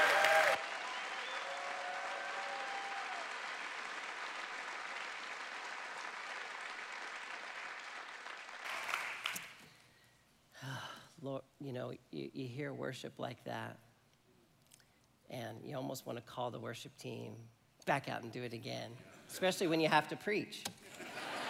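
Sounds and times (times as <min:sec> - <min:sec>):
audience welcoming hand clap: 0:00.0 - 0:09.7
speech: 0:11.3 - 0:13.9, 0:15.3 - 0:20.8.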